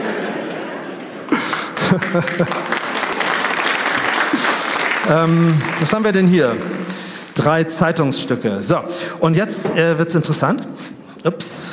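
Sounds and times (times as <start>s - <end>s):
audience applause: 1.2s - 7.4s
audience chuckles: 1.3s - 2.7s
speech: 1.9s - 2.8s, 5.1s - 11.6s.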